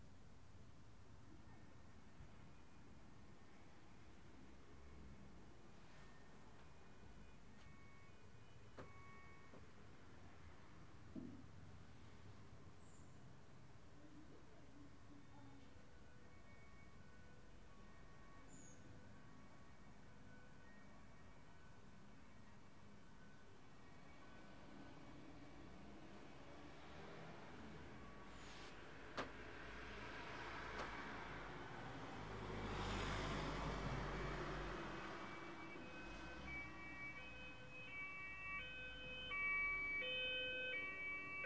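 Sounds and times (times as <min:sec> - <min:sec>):
German siren car driving by: 0:24.5 - 0:41.4.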